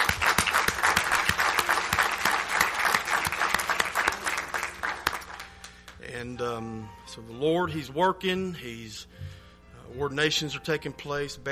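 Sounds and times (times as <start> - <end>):
Baptist church congregation applauding a new deacon: 0.0 - 6.0
speech: 6.8 - 9.2, 9.9 - 11.4.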